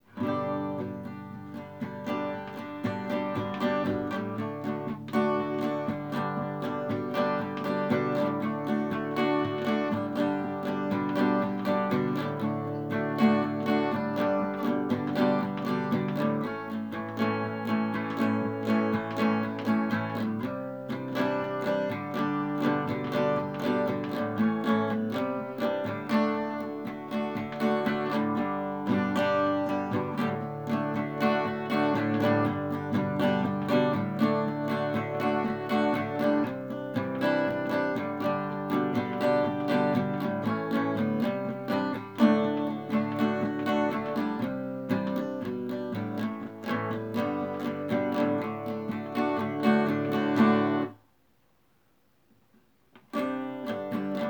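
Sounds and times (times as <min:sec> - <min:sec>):
acoustic music: 0:00.0 - 0:51.0, 0:53.1 - 0:54.2.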